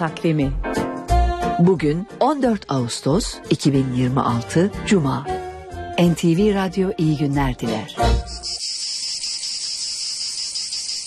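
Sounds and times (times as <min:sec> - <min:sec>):
speech: 0:00.0 - 0:00.9, 0:01.6 - 0:05.4, 0:06.0 - 0:08.6
cicada buzzing: 0:08.2 - 0:11.0.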